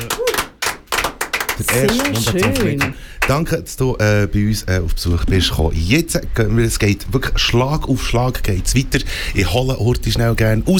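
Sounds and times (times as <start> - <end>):
studio applause: 0.0 - 3.4
speech: 1.6 - 10.7.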